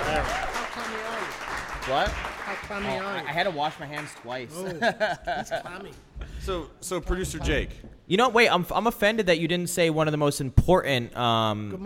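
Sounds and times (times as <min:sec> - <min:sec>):
people whooping and cheering: 0:00.0 - 0:01.2
audience applause: 0:00.0 - 0:04.3
speech: 0:01.8 - 0:11.8
laughter: 0:04.5 - 0:06.0.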